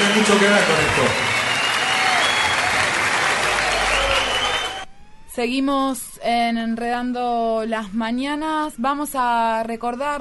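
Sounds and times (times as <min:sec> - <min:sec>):
audience applause for a musician: 0:00.0 - 0:04.8
speech: 0:00.2 - 0:01.3, 0:05.4 - 0:10.1.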